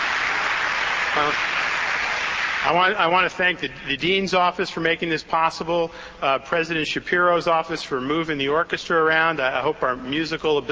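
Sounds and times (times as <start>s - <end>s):
audience applause: 0.0s - 3.0s
speech: 1.2s - 1.6s, 2.6s - 10.7s.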